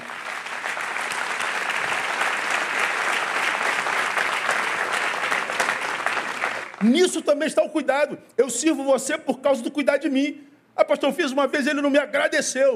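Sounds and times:
audience applause: 0.0 - 6.8
speech: 6.8 - 12.7.

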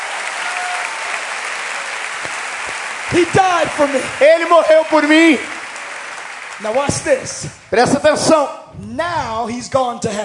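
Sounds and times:
applause from a large crowd: 0.0 - 8.2
speech: 3.1 - 5.6, 6.6 - 10.2.

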